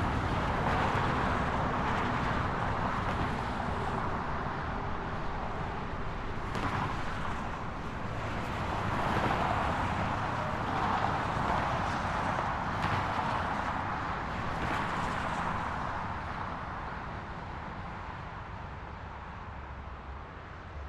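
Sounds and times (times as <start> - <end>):
highway traffic near an exit ramp: 0.0 - 20.8.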